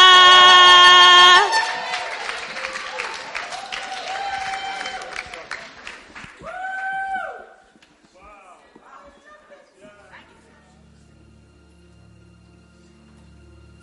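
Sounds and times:
audience clapping to welcome a singer to the stage: 0:00.1 - 0:07.0.

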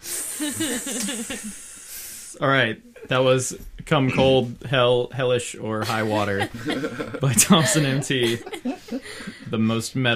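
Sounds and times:
fog machine hissing: 0:00.0 - 0:02.4
laughter: 0:00.4 - 0:01.6, 0:05.8 - 0:09.5
speech: 0:00.4 - 0:01.7, 0:02.3 - 0:10.1.

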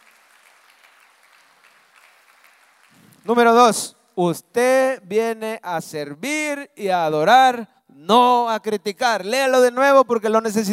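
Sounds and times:
audience applause: 0:00.0 - 0:03.3
speech: 0:03.2 - 0:10.7.

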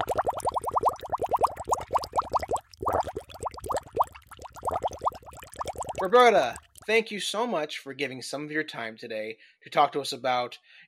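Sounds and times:
submarine resurfacing water bubbling effect: 0:00.0 - 0:06.9
speech: 0:06.0 - 0:10.8.

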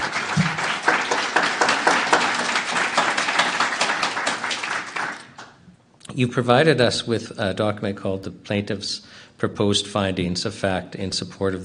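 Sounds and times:
audience clapping: 0:00.0 - 0:05.6
speech: 0:06.2 - 0:11.6.

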